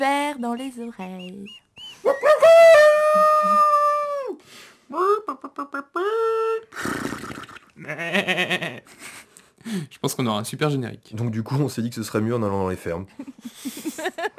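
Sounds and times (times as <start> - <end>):
speech: 0.0 - 2.2, 3.1 - 3.8, 4.9 - 7.0, 7.8 - 14.3
person imitating a howling dog: 2.1 - 6.7.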